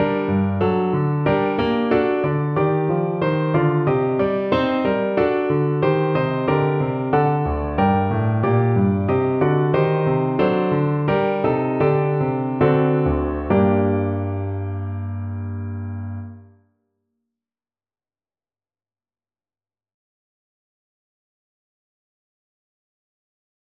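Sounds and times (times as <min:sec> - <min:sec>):
slow piano: 0:00.0 - 0:16.6.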